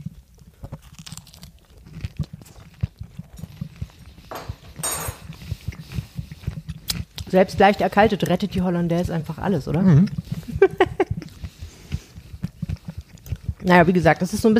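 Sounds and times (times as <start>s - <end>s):
chewing burger bread: 0.0s - 14.5s
speech: 7.3s - 10.2s, 13.7s - 14.5s
laughter: 10.4s - 11.3s.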